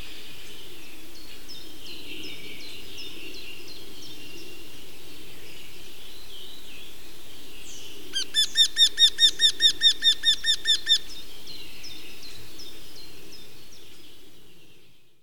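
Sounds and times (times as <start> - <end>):
wryneck calling: 8.2 - 11.2.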